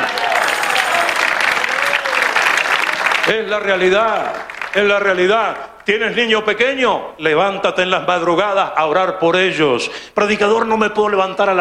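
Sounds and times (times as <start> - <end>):
audience applause: 0.0 - 5.9
speech: 3.3 - 11.5.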